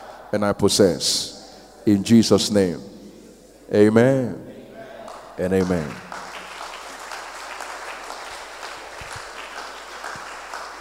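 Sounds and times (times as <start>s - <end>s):
speech: 0.3s - 3.0s, 3.7s - 4.5s, 5.4s - 6.0s
audience applause: 5.1s - 10.7s.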